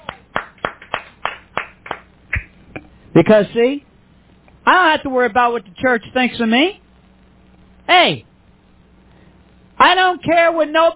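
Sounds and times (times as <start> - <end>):
church congregation clapping hands in praise: 0.0 - 2.5
speech: 3.2 - 3.9, 4.7 - 6.8, 7.9 - 8.3, 9.8 - 10.9.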